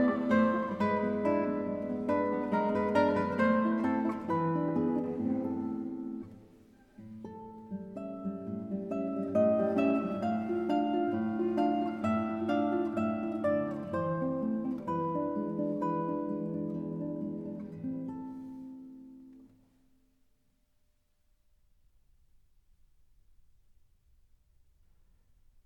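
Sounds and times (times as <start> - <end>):
minuet: 0.0 - 19.5.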